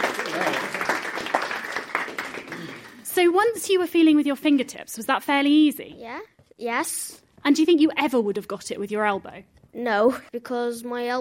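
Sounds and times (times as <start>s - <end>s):
audience applause: 0.0s - 3.1s
speech: 3.2s - 11.1s.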